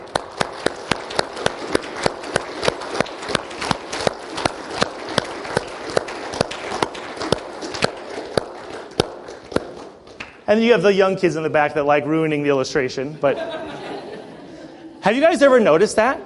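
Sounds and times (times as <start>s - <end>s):
large group clapping: 0.0s - 10.5s
speech: 10.5s - 13.6s, 15.0s - 16.2s
laughter: 13.1s - 15.2s.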